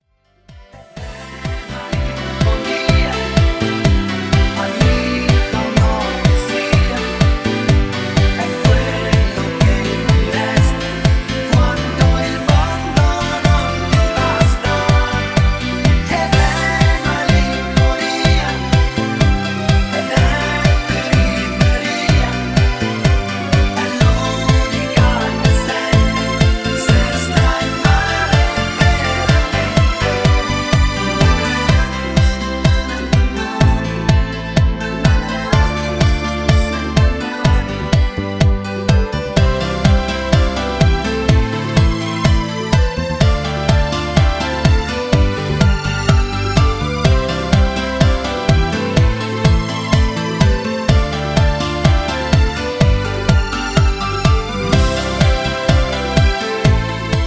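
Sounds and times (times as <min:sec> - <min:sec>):
cha cha cha group dance song: 0:00.6 - 0:57.2.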